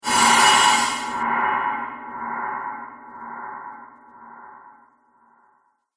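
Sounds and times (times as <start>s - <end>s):
reverse cymbal whoosh: 0.0s - 4.7s.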